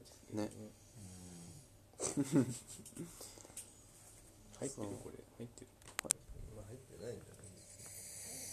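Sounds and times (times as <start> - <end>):
speech: 0.3 - 0.7, 2.2 - 3.3, 4.6 - 5.8, 6.7 - 7.4
father snoring: 0.9 - 1.7, 7.8 - 8.5.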